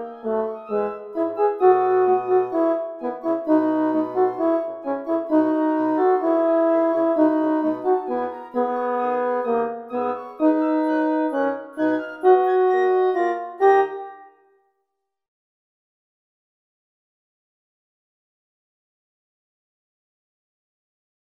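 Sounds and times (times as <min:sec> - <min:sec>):
horn: 0:00.0 - 0:14.4.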